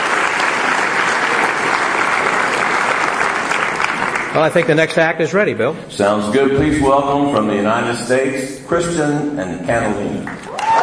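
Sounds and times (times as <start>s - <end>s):
audience applause: 0.0s - 4.8s, 10.2s - 10.8s
speech: 4.4s - 10.5s.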